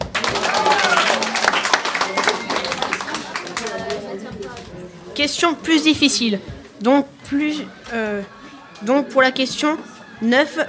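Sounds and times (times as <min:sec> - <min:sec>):
audience applause: 0:00.0 - 0:04.7
chatter: 0:00.0 - 0:10.6
speech: 0:05.2 - 0:10.6.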